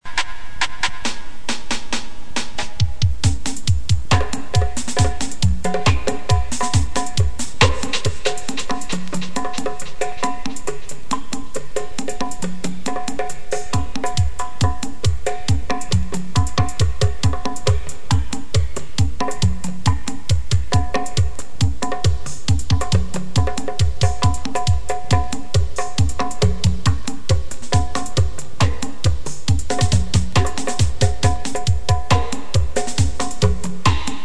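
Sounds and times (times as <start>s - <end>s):
drums: 0.0s - 34.2s.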